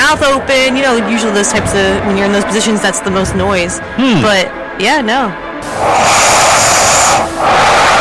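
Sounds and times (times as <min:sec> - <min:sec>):
speech: 0:00.1 - 0:06.3
heavy nasal breathing while sleeping: 0:05.6 - 0:07.9.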